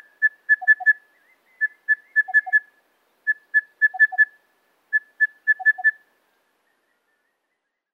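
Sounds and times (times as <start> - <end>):
crested bellbird calling: 0.0 - 2.7, 3.3 - 6.1.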